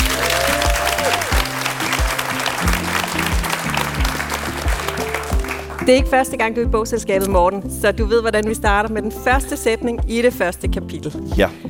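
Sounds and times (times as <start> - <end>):
audience applause: 0.0 - 6.0
speech: 5.9 - 11.6.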